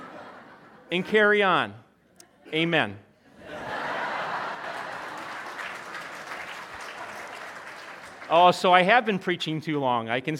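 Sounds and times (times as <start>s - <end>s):
laughter: 0.0s - 1.1s, 2.4s - 6.1s
speech: 0.9s - 1.8s, 2.5s - 3.1s, 8.3s - 10.3s
audience clapping: 4.1s - 9.3s.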